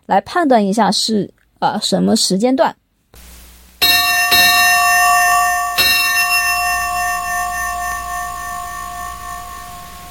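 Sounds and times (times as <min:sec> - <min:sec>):
speech: 0:00.1 - 0:03.2
bright bell struck: 0:03.8 - 0:10.0.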